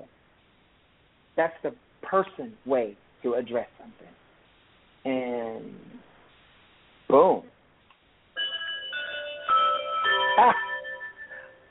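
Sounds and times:
speech: 1.4s - 4.2s, 5.0s - 6.0s, 7.1s - 7.5s, 10.4s - 10.6s
segment bell ringing: 8.4s - 11.6s.

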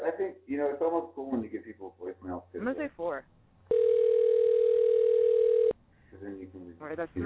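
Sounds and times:
speech: 0.6s - 2.9s
telephone ring on an outgoing call: 3.7s - 5.8s.

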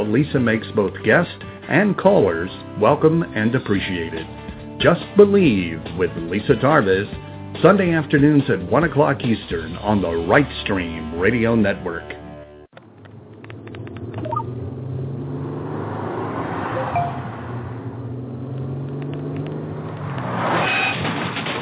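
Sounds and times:
speech: 0.1s - 12.2s
car engine droning while driving on the road: 12.8s - 21.5s.

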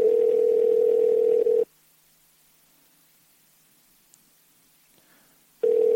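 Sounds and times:
outgoing phone call electronic ringback tone: 0.0s - 1.7s, 5.6s - 5.9s.

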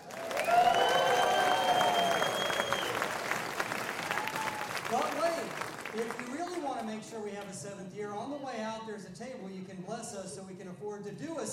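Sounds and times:
people cheering: 0.0s - 6.6s
audience applause: 0.0s - 6.9s
high whistles: 0.4s - 4.7s
speech: 9.0s - 11.5s.

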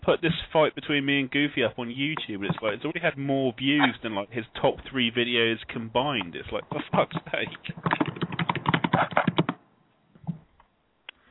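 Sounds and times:
speech: 0.0s - 8.2s, 9.0s - 9.4s
typing on a keyboard: 6.6s - 9.6s.

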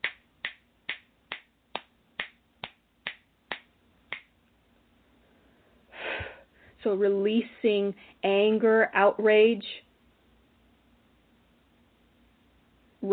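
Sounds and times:
finger snapping: 0.0s - 4.3s
speech: 6.8s - 9.8s.

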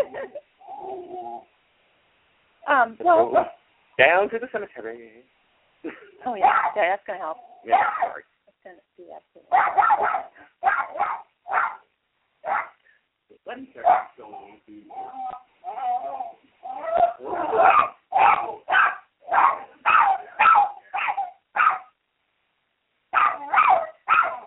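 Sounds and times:
speech: 0.0s - 0.5s, 2.6s - 11.8s, 13.4s - 20.6s
dog barking: 3.2s - 3.6s, 6.4s - 6.9s, 7.7s - 8.2s, 9.5s - 12.8s, 13.8s - 16.1s, 16.7s - 22.0s, 23.1s - 24.4s.

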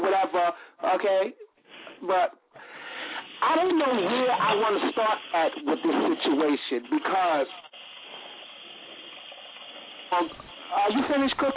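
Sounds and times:
speech: 0.5s - 1.4s, 2.0s - 2.4s, 3.4s - 7.7s, 10.1s - 11.5s
water running from a kitchen tap: 7.3s - 11.5s.

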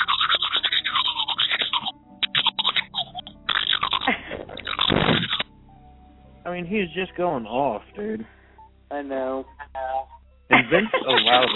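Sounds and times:
brushing teeth with a toothbrush: 0.0s - 5.4s
laughter: 4.0s - 5.4s, 10.5s - 11.5s
speech: 6.6s - 9.6s, 10.5s - 11.5s.

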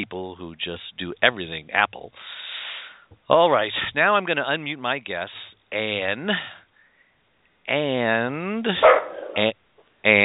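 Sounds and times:
speech: 0.0s - 2.4s, 3.1s - 6.6s, 7.7s - 10.2s
dogs barking and yipping at home over a phone line: 8.8s - 9.4s.

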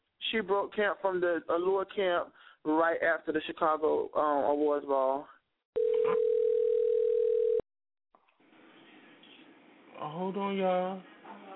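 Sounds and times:
speech: 0.3s - 5.3s, 10.0s - 11.1s
telephone dial tone: 5.8s - 7.6s.

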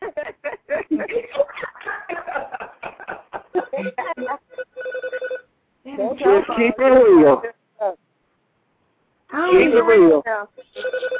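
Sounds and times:
laughter: 0.0s - 4.3s
phone ringing: 3.7s - 5.5s, 10.6s - 11.1s
speech: 6.3s - 7.6s, 9.7s - 11.1s.

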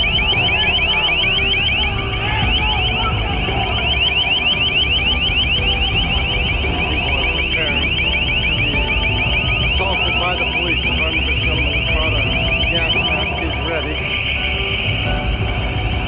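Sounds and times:
crowd control acoustic device blaring piercing warbling tone: 0.0s - 16.0s
crowd noise and voices: 0.0s - 16.0s.

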